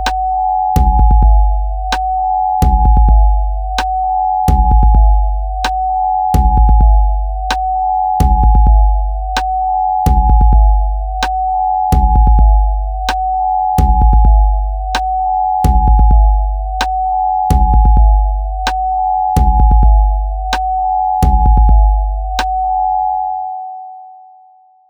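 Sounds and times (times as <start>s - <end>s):
sine wave tone: 0.0s - 24.8s.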